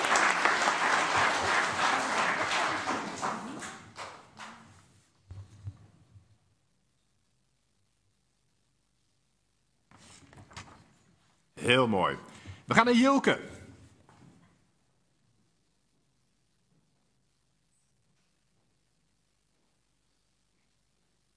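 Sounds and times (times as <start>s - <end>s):
loud dense crowd applause: 0.0s - 4.6s
speech: 11.7s - 13.5s.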